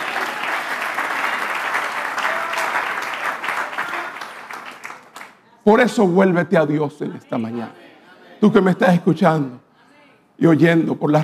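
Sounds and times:
audience applause: 0.0s - 5.3s
speech: 5.6s - 7.8s, 8.4s - 9.6s, 10.4s - 11.2s.

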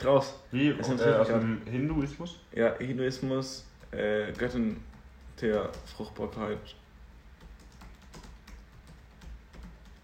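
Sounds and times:
speech: 0.0s - 6.8s
low steady hum: 0.0s - 10.0s
computer keyboard typing with clicky keystrokes: 3.7s - 6.6s, 7.3s - 10.0s.

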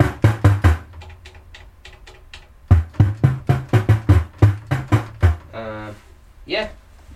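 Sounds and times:
synthesized percussion hits made on a monosynth: 0.0s - 1.3s, 2.7s - 5.6s.

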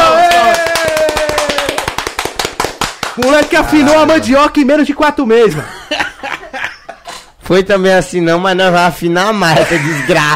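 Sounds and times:
people clapping: 0.0s - 4.3s
speech: 3.2s - 5.8s, 7.5s - 10.3s
laughter: 5.5s - 7.2s, 9.5s - 10.3s.

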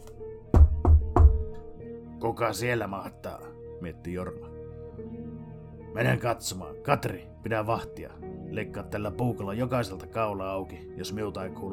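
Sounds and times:
heavy knocks on the outside door: 0.6s - 1.6s
speech: 2.2s - 5.2s, 6.0s - 11.7s.

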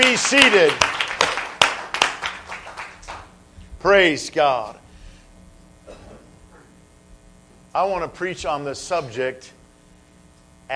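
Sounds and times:
group clapping hands: 0.0s - 3.4s
speech: 0.1s - 1.0s, 3.8s - 4.8s, 7.7s - 9.6s.

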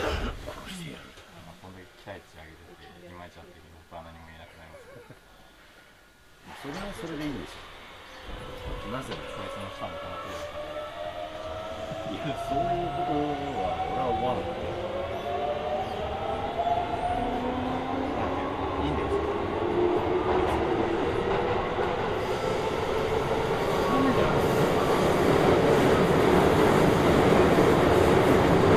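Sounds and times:
train motor whine, Hokuso Railway onto the Toei Asakusa Line: 6.5s - 13.0s
train rumble: 6.5s - 28.7s.

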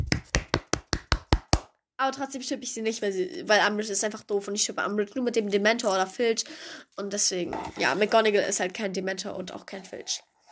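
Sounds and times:
sharp hand claps: 0.0s - 1.7s
speech: 2.0s - 10.3s.

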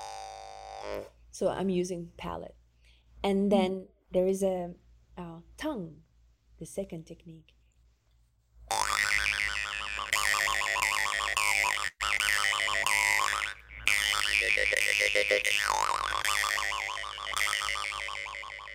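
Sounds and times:
speech: 0.9s - 2.6s, 3.2s - 7.6s
twangy vocal imitation of a lark's song: 8.7s - 18.7s.

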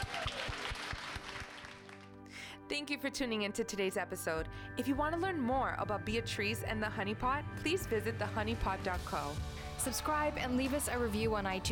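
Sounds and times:
audience applause: 0.0s - 2.1s
speech: 2.7s - 11.6s.

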